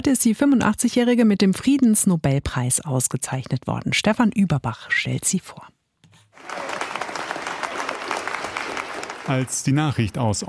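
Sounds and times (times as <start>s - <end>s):
speech: 0.0s - 5.8s, 9.3s - 10.4s
spontaneous crowd applause in a hall: 6.4s - 10.4s.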